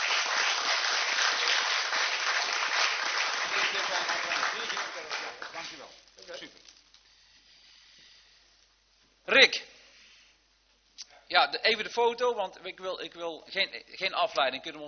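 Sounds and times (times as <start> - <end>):
applause: 0.0 - 6.0
speech: 9.3 - 9.7, 11.3 - 14.8.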